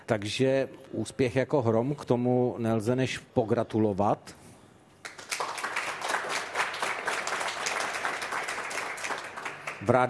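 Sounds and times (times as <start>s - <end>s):
speech: 0.1s - 4.4s, 9.8s - 10.0s
applause from a small group: 5.0s - 10.0s.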